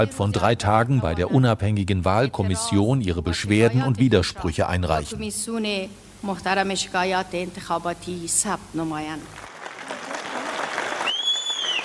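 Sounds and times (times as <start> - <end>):
speech: 0.0 - 9.4
supporters of President Ghani cheering: 9.5 - 11.8.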